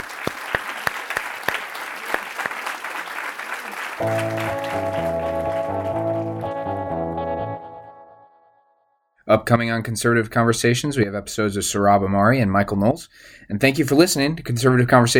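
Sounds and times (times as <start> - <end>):
audience applause for panelists: 0.0 - 7.9
speech: 4.0 - 4.9, 9.3 - 15.1.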